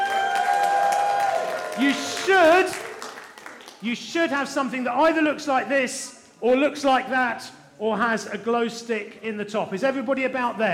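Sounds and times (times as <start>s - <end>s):
whoops and cheers: 0.0s - 2.8s
audience applause: 0.0s - 3.8s
speech: 1.8s - 2.8s, 3.8s - 10.7s.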